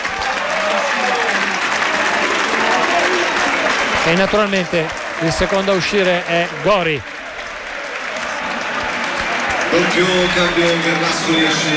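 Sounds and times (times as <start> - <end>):
football stadium crowd applauding at the Del Duca: 0.0 - 11.7
speech: 4.1 - 7.2, 9.7 - 11.7.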